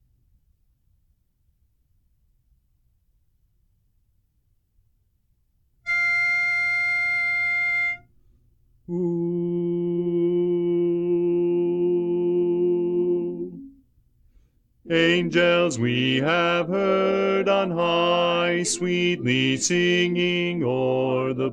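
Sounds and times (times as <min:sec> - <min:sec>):
bass part of a Christmas carol: 0:05.9 - 0:08.1, 0:08.8 - 0:13.9, 0:14.8 - 0:21.5.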